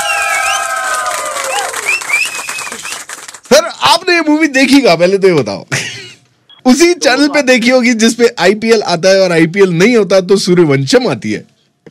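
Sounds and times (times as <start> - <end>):
applause: 0.0 - 3.6
speech: 4.4 - 5.8, 6.6 - 11.5.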